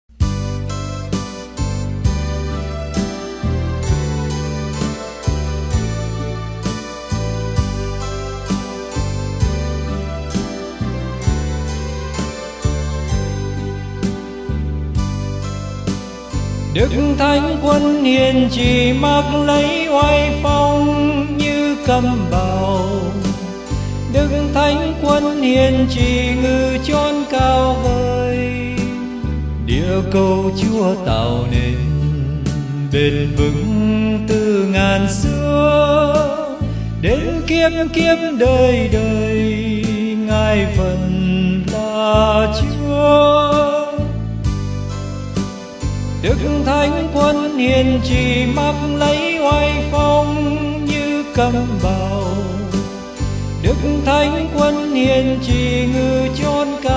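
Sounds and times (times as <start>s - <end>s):
bass: 0.0s - 56.9s.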